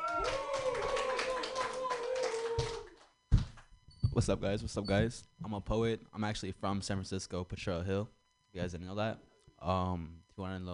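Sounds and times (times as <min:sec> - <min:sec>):
open mic audience clapping for a performer: 0:00.0 - 0:03.7
speech: 0:04.2 - 0:10.7.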